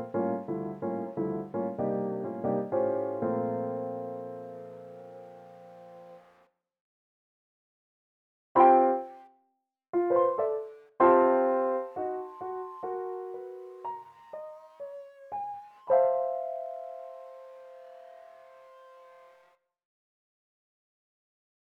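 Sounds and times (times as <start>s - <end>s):
lo-fi piano: 0.0s - 6.4s, 8.6s - 9.3s, 10.0s - 19.5s.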